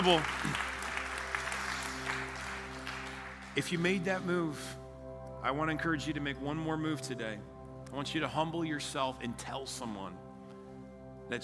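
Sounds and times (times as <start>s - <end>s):
speech: 0.0s - 0.6s, 3.6s - 4.8s, 5.4s - 10.2s, 11.3s - 11.4s
audience applause: 0.0s - 3.8s.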